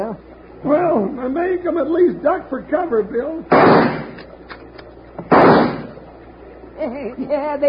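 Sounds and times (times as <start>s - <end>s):
speech: 0.2s - 4.0s, 6.8s - 7.6s
rifle shots: 3.5s - 4.3s, 5.3s - 6.0s.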